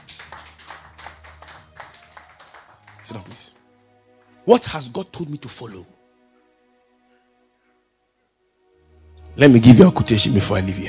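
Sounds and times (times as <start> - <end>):
crowd clapping hands: 0.0 - 3.7
speech: 3.1 - 3.6, 4.4 - 6.0, 9.4 - 10.8.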